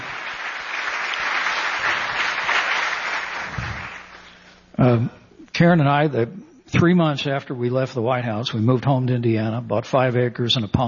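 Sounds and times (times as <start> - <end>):
audience round of applause: 0.0 - 4.4
speech: 4.8 - 10.8.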